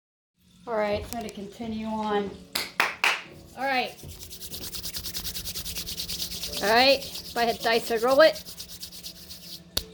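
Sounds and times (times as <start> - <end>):
speech: 0.7 - 2.6, 3.6 - 4.7, 6.5 - 8.5
shuffling playing cards: 3.9 - 9.9.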